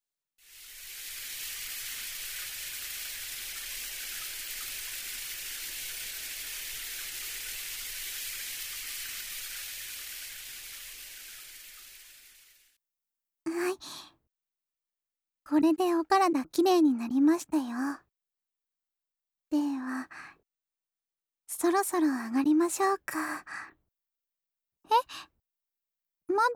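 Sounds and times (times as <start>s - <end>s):
shower water rinsing off foam: 0.4s - 12.8s
speech: 15.5s - 18.0s, 19.5s - 20.4s, 21.6s - 23.8s, 24.9s - 25.3s, 26.3s - 26.5s.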